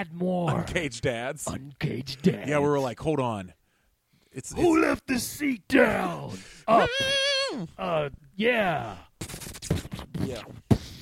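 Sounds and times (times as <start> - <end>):
speech: 0.0 - 3.6, 4.3 - 9.4, 10.3 - 10.6
voice imitating whistling tones and explosions: 5.8 - 8.1.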